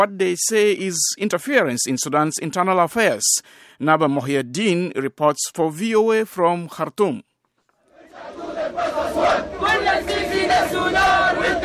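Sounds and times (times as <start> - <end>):
speech: 0.0 - 7.3
protest crowd chanting: 7.8 - 11.6.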